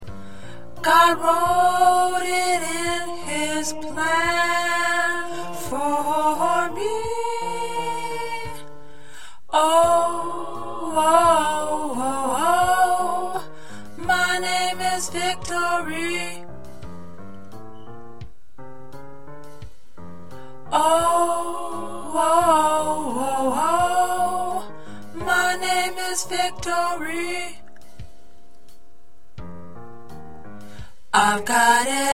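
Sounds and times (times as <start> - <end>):
tenor choir part singing: 0.8 - 8.7, 9.5 - 16.4, 20.7 - 27.6, 31.2 - 32.1.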